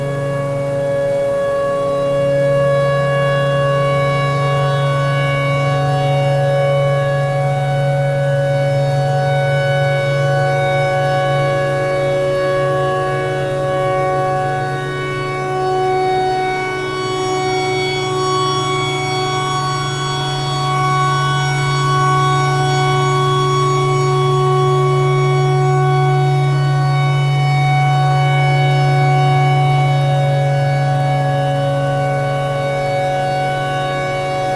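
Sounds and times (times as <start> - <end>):
tornado siren: 0.0 - 34.5.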